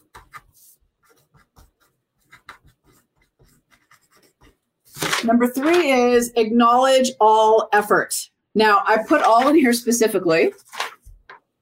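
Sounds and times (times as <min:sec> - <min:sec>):
scratchy writing on a surface: 0:00.0 - 0:04.7
speech: 0:05.2 - 0:10.6.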